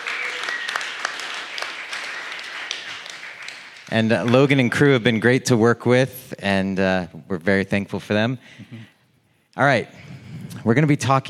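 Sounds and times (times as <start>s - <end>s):
audience applause: 0.0s - 4.8s
speech: 3.9s - 8.9s, 9.6s - 11.2s.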